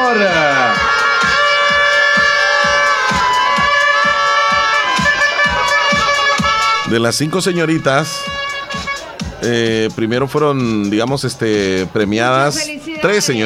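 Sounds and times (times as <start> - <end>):
large crowd applauding and cheering: 0.0 - 9.5
steady rhythmic booming beats: 0.0 - 10.0
sustained horn-like tones: 0.0 - 10.0
speech: 0.1 - 0.5, 6.9 - 8.8, 9.4 - 13.4.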